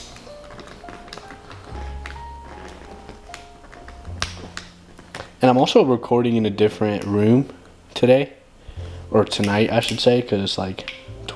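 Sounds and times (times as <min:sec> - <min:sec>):
water bottle being opened: 0:00.0 - 0:05.4
speech: 0:05.4 - 0:08.4, 0:09.1 - 0:11.0.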